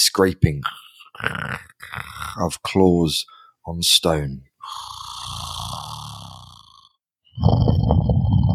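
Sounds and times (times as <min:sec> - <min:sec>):
speech: 0:00.2 - 0:01.6, 0:02.4 - 0:05.0
large creature's deep rumbling breath: 0:00.7 - 0:02.4, 0:04.6 - 0:08.5.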